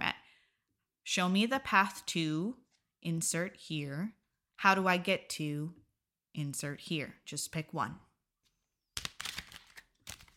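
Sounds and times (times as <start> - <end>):
speech: 1.1 - 5.8, 6.4 - 8.1
oracle cards being shuffled: 8.4 - 10.3.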